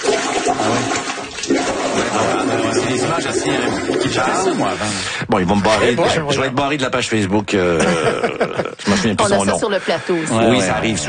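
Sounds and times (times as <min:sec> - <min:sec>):
toilet bowl water surging back up during a heavy rainstorm in Mile End: 0:00.0 - 0:05.2
speech: 0:00.5 - 0:11.0
laughter: 0:07.6 - 0:11.0.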